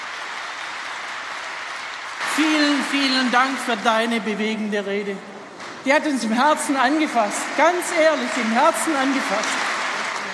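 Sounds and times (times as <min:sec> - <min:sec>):
sustained applause from a large crowd: 0:00.0 - 0:04.4, 0:06.4 - 0:10.3
speech: 0:02.4 - 0:09.6.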